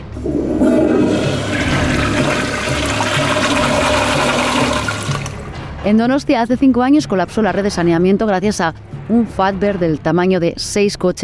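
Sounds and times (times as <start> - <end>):
toilet flushing: 0.0 - 5.6
speech: 0.2 - 0.5, 5.8 - 11.2.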